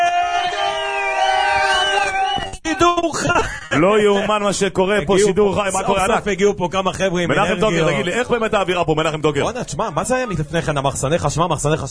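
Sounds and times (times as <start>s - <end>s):
live beach audience clapping: 0.5s - 2.6s
speech: 2.8s - 11.8s.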